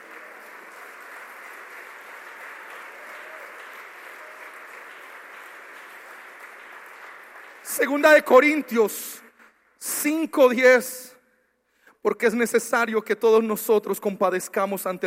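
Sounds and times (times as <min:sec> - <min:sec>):
audience applause: 0:00.0 - 0:08.2
speech: 0:07.7 - 0:09.2, 0:10.0 - 0:11.0, 0:12.0 - 0:15.0.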